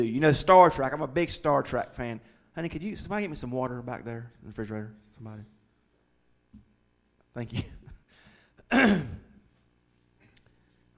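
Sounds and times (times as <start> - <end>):
speech: 0.0 - 5.6, 7.4 - 7.8, 8.7 - 9.2
choked harsh throat clearing: 8.6 - 9.4.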